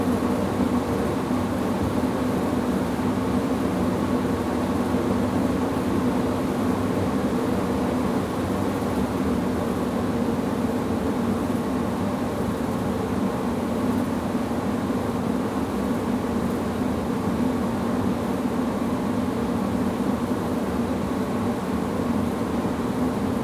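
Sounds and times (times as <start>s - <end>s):
grain dryer fans running: 0.0s - 23.4s.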